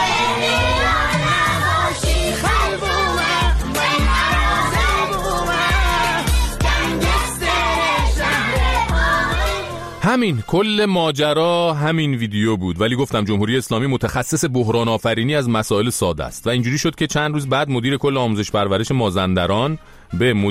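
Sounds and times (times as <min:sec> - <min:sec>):
classroom of children singing along together: 0:00.0 - 0:10.0
speech: 0:10.0 - 0:20.4.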